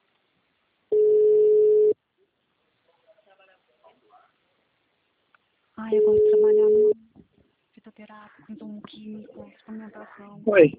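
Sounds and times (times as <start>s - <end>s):
telephone ringing tone while a call is placed: 0.9s - 2.0s, 6.0s - 7.0s
speech: 8.1s - 10.7s.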